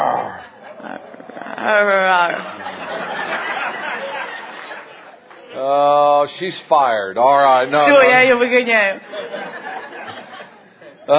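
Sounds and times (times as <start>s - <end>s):
person imitating a roar: 0.0s - 2.4s
rough breathy vocal noise: 0.0s - 2.4s
laughter: 0.0s - 5.2s, 9.0s - 11.1s
speech: 1.6s - 2.6s, 5.6s - 9.2s.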